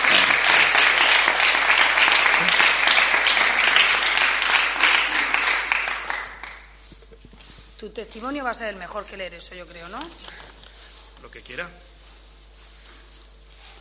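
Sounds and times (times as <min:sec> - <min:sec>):
audience applause: 0:00.0 - 0:06.8
speech: 0:08.0 - 0:10.4, 0:11.3 - 0:11.9.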